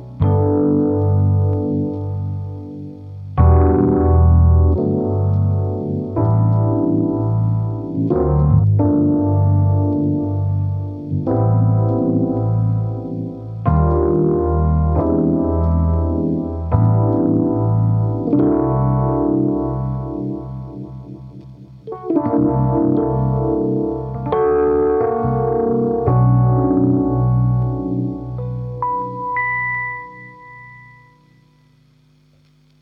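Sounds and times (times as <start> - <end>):
Rhodes electric piano through a Rotovibe effect: 0.0 - 31.5.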